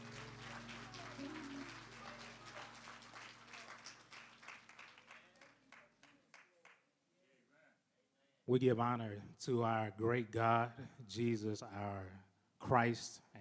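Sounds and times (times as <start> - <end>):
audience clapping hands in praise: 0.0 - 6.8
speech: 8.5 - 13.2.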